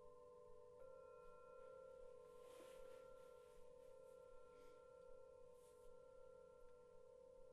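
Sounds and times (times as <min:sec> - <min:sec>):
singing bowls ringing: 0:00.2 - 0:07.4
soft shimmering rustling strokes: 0:02.0 - 0:06.0.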